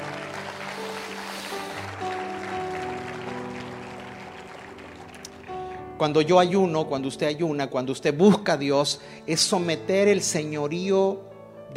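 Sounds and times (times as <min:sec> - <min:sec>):
audience applauding: 0:00.0 - 0:06.0
speech: 0:06.0 - 0:11.7.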